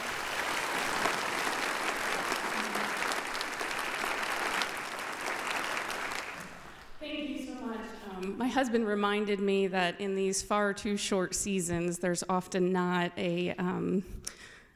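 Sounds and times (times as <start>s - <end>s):
audience applause: 0.0s - 7.0s
speech: 8.5s - 14.2s.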